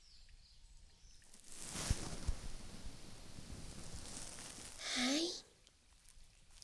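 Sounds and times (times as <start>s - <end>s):
left ear cleaning: 1.3s - 5.4s.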